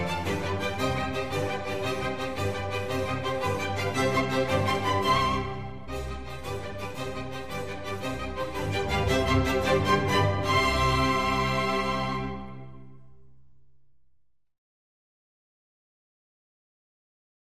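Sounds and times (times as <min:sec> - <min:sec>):
concerto for strings in C major: 0:00.0 - 0:13.0.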